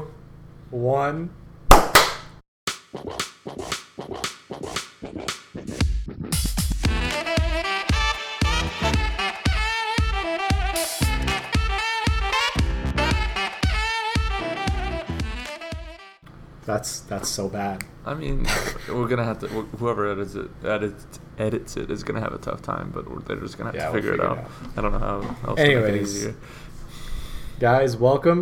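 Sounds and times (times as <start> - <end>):
speech: 0.7 - 1.4, 16.7 - 26.7, 27.6 - 28.4
hand claps: 1.7 - 2.2, 3.2 - 5.5
loud music track with punchy beat: 2.7 - 16.2.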